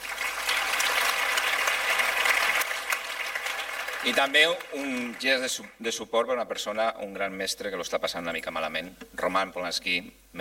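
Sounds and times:
audience applause: 0.0s - 5.8s
speech: 4.0s - 10.3s.

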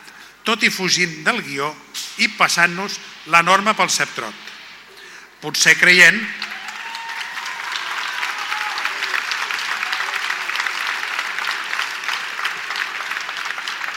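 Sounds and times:
speech: 0.5s - 4.5s, 5.4s - 6.4s
crowd applauding: 6.2s - 13.9s.

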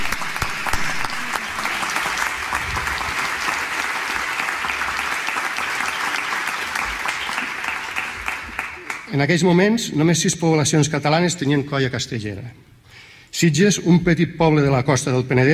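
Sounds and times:
audience applause: 0.0s - 9.1s
speech: 9.2s - 12.7s, 13.4s - 15.5s.

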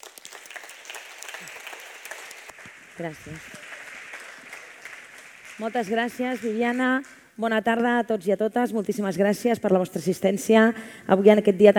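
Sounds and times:
audience applause: 0.0s - 7.2s
speech: 3.0s - 3.6s, 5.6s - 11.7s.

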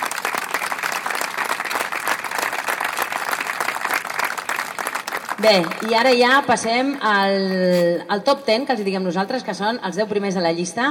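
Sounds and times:
audience applause: 0.0s - 7.1s
speech: 5.4s - 10.9s.

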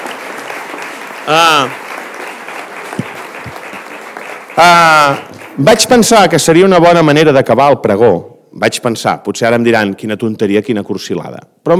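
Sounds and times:
crowd applause: 0.0s - 6.2s
person cheering: 1.3s - 1.8s
speech: 1.3s - 1.8s, 4.6s - 11.7s.

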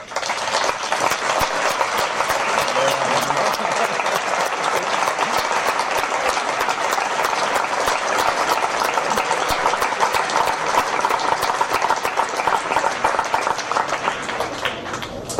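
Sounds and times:
audience applause: 0.0s - 15.3s
laughter: 1.8s - 11.0s.

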